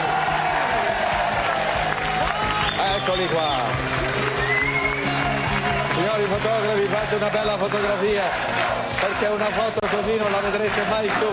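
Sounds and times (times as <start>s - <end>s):
crowd applauding Juventus coach Marcello Lippi: 0.0s - 11.3s
scattered cheers: 0.0s - 11.3s
speech: 3.1s - 4.1s, 6.0s - 11.3s.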